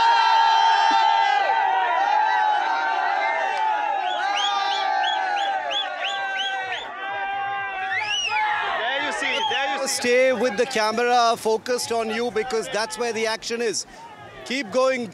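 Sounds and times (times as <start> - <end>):
dense celebrating crowd cheering and whooping: 0.0 - 10.6
many overlapping high-pitched voices shouting: 0.0 - 10.8, 14.0 - 14.8
speech: 10.0 - 15.1.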